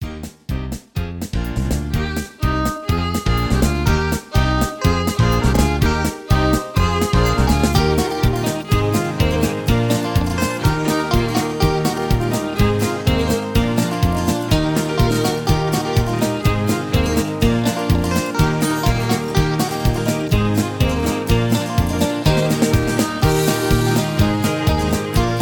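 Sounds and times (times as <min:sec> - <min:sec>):
high key instrumental music: 0:00.0 - 0:25.4.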